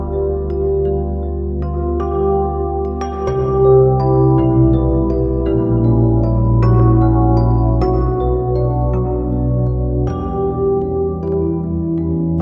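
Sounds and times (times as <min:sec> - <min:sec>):
electric 88-key piano: 0:00.0 - 0:12.4.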